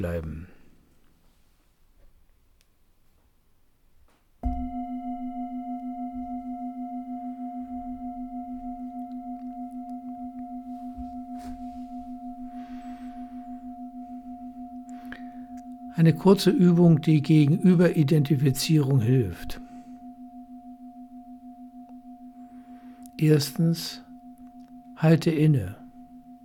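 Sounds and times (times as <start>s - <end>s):
speech: 0.0s - 0.6s, 16.0s - 19.6s, 23.2s - 24.0s, 25.0s - 25.8s
gong ringing: 4.5s - 24.7s.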